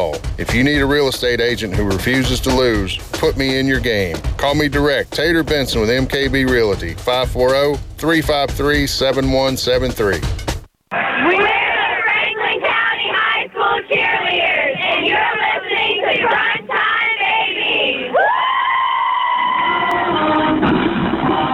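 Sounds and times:
speech: 0.4s - 11.5s
cheerleaders cheering and yelling: 10.9s - 21.5s.

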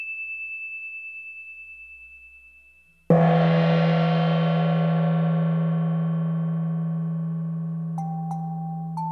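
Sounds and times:
faint high chimes: 0.0s - 3.2s
deep meditation bell ringing: 3.1s - 9.0s.

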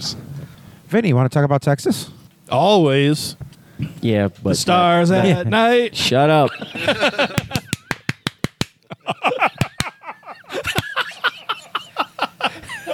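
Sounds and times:
speech: 0.0s - 0.3s, 0.9s - 7.4s
laughter: 6.3s - 8.0s, 8.9s - 12.9s
hands clapping in a sequence: 7.4s - 8.9s, 9.6s - 10.0s.

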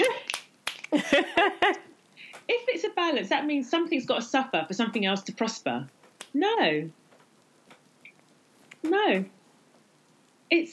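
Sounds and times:
finger snapping: 0.0s - 1.0s
speech: 1.1s - 1.9s, 2.5s - 7.0s, 8.8s - 9.4s, 10.5s - 10.7s.

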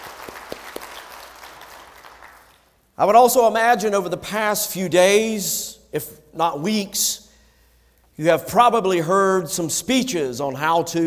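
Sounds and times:
audience applause: 0.0s - 2.6s
speech: 3.0s - 7.2s, 8.2s - 11.0s.

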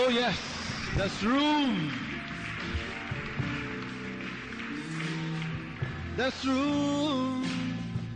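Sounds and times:
audience clapping: 0.0s - 7.9s
speech: 0.1s - 2.8s, 6.2s - 7.7s.

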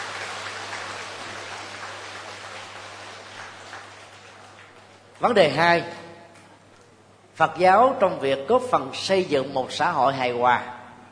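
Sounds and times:
crowd applauding: 0.0s - 5.4s
speech: 5.2s - 6.0s, 7.4s - 10.8s.

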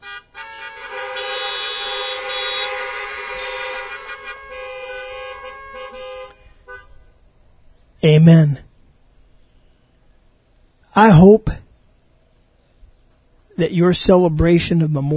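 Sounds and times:
car horns honked by an audience of veterans and others: 0.0s - 7.3s
speech: 8.0s - 8.6s, 11.2s - 11.6s, 13.6s - 15.1s.

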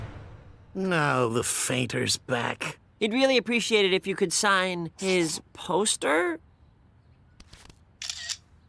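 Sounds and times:
speech: 0.8s - 6.5s
camera shutter click: 8.0s - 8.4s.

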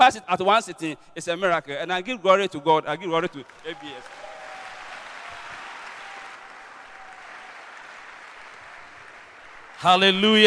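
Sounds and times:
speech: 0.0s - 4.2s, 9.8s - 10.4s
audience clapping: 3.2s - 10.4s.

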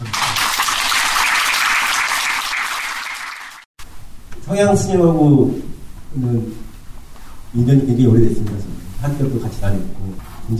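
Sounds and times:
congratulatory applause: 0.0s - 3.7s
speech: 4.5s - 6.7s, 7.5s - 10.5s.

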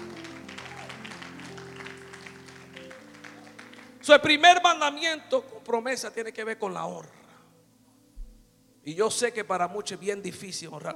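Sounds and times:
audience applause: 0.0s - 4.1s
speech: 4.0s - 7.2s, 8.8s - 10.9s.

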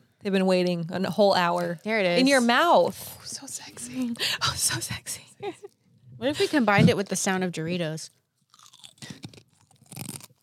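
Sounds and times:
speech: 0.2s - 8.2s
crunching and chewing a grasshopper: 8.5s - 10.4s.

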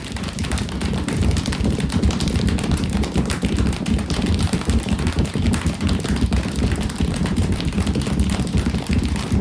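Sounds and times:
group imitating a storm by tapping patting and thumping: 0.0s - 9.3s.

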